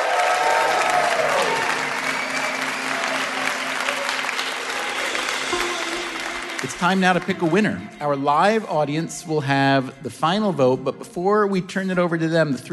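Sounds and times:
audience applause at a live game show: 0.0 - 8.0
speech: 6.6 - 12.7.

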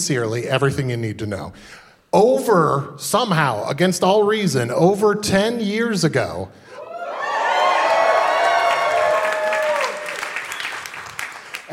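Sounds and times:
speech: 0.0 - 6.7
live show audience cheering and applauding: 6.8 - 11.7.

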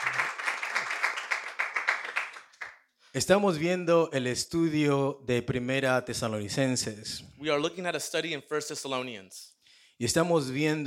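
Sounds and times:
church congregation clapping in praise of God: 0.0 - 2.9
speech: 3.1 - 10.8.

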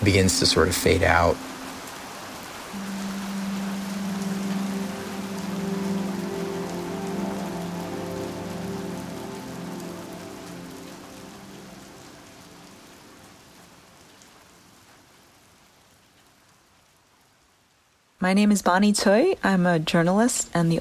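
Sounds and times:
speech: 0.0 - 1.6, 18.2 - 20.7
rain pattering: 0.0 - 20.7
low watery hum: 0.8 - 13.4.

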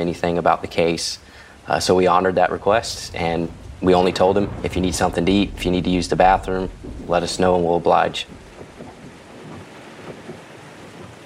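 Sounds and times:
speech: 0.0 - 8.4
heavy driving rain: 0.0 - 11.2
windshield wipers working at full speed: 6.7 - 11.2.

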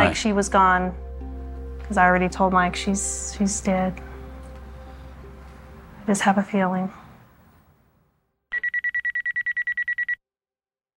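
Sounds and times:
speech: 0.0 - 1.0, 1.9 - 4.1, 6.1 - 7.0
telephone ringing: 8.6 - 10.2.

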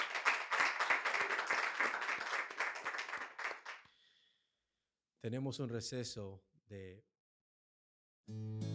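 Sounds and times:
audience clapping in a steady rhythm: 0.0 - 3.9
speech: 5.2 - 7.1, 8.3 - 8.6.

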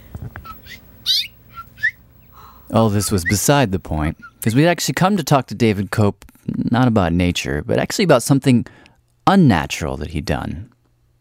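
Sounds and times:
faint low noise: 0.0 - 11.1
mother bird chirping at her nest: 0.4 - 4.6
speech: 2.7 - 10.7.

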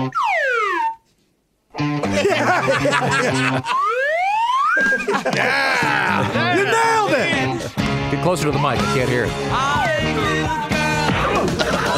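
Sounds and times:
slide whistle: 0.1 - 1.1, 3.6 - 5.1
laughter: 2.0 - 4.1, 4.7 - 7.8, 11.2 - 11.9
speech: 2.6 - 3.9, 5.0 - 7.5, 8.2 - 10.6.

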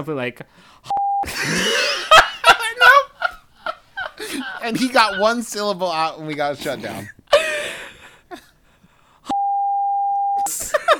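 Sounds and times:
speech: 0.0 - 2.0, 4.3 - 7.2
censor beep over a spoken word: 0.9 - 1.2, 9.3 - 10.5
laughter: 1.2 - 6.4, 7.3 - 8.5, 10.5 - 10.9.

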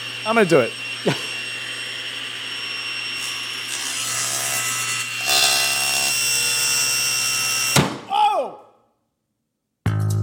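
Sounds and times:
spinning table saw blade cutting: 0.0 - 7.8
speech: 0.2 - 1.3.

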